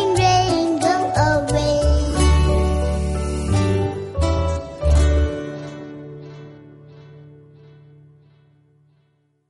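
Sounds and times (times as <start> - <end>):
nursery rhyme: 0.0 - 5.7.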